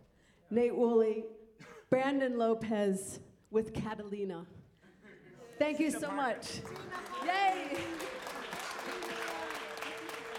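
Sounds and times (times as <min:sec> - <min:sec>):
speech: 0:00.5 - 0:04.6, 0:05.6 - 0:08.0
audience applause after a live music performance: 0:06.1 - 0:10.3.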